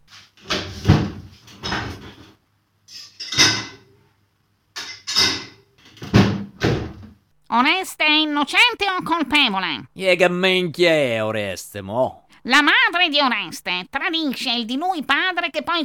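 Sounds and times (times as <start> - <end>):
dishes clattering while loaded into a dishwasher: 0.5 - 2.3, 2.9 - 3.9, 4.8 - 6.8
speech: 7.5 - 15.8.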